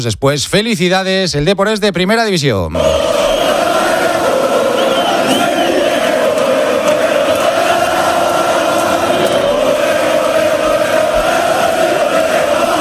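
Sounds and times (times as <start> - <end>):
speech: 0.0 - 3.4
Deportivo de La Coruña fans roaring celebrating promotion: 2.7 - 12.8.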